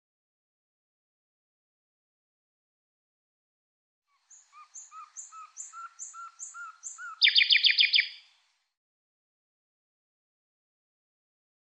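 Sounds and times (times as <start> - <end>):
bird chirping: 4.1 - 8.4.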